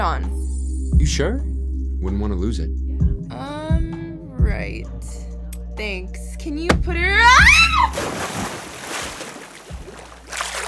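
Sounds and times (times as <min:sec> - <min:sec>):
speech: 0:00.0 - 0:00.4, 0:01.0 - 0:03.8, 0:04.5 - 0:08.7
water splashing: 0:07.7 - 0:10.6.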